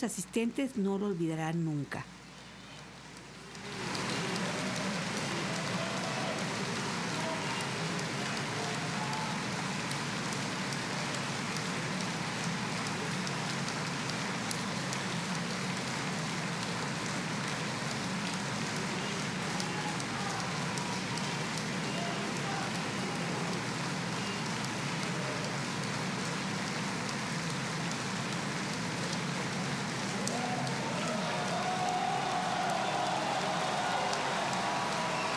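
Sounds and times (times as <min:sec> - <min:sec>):
speech: 0:00.0 - 0:02.2
audience applause: 0:03.4 - 0:35.3
audience cheering: 0:03.6 - 0:09.9, 0:18.7 - 0:24.0, 0:30.0 - 0:35.3.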